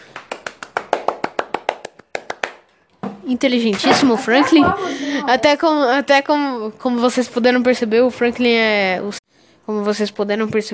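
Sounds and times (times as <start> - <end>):
hands clapping: 0.0 - 2.8
speech: 3.3 - 9.2, 9.8 - 10.7.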